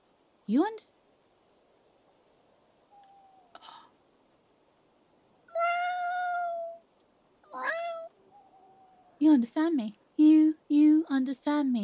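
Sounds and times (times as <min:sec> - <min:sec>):
speech: 0:00.5 - 0:01.0, 0:09.4 - 0:10.3, 0:11.1 - 0:11.8
cat meowing: 0:02.9 - 0:03.6, 0:05.5 - 0:06.8, 0:07.4 - 0:09.2.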